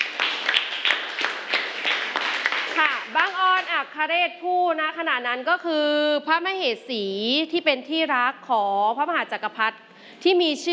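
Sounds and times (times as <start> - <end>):
audience clapping rhythmically for a group: 0.0 - 3.9
speech: 3.2 - 10.7.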